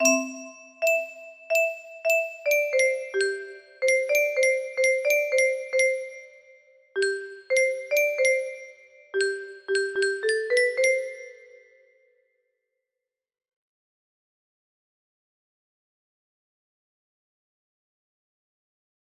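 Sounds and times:
music box: 0:00.0 - 0:12.0.

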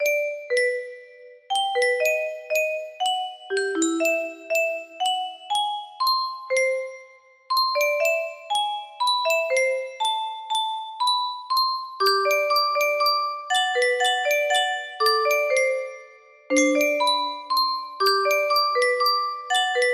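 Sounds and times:
music box melody in F scale: 0:00.0 - 0:19.9.

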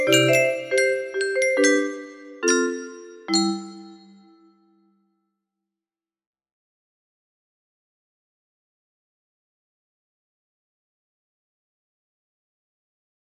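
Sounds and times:
melody: 0:00.0 - 0:04.6.

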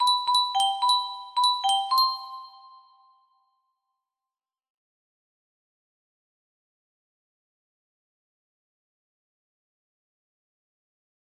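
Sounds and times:
music box melody: 0:00.0 - 0:03.2.

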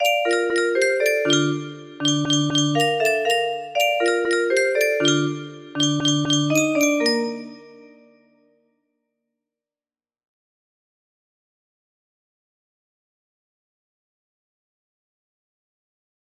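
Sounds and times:
music box melody: 0:00.0 - 0:08.2.

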